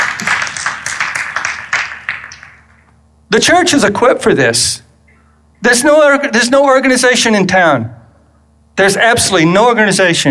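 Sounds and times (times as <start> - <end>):
audience applause: 0.0 - 2.8
speech: 3.3 - 4.8, 5.6 - 8.0, 8.8 - 10.2.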